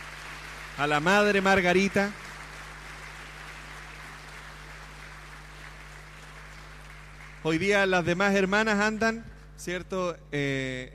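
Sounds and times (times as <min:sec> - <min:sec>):
audience applause: 0:00.0 - 0:07.9
low electrical hum: 0:00.0 - 0:10.9
speech: 0:00.8 - 0:02.2, 0:07.4 - 0:10.9.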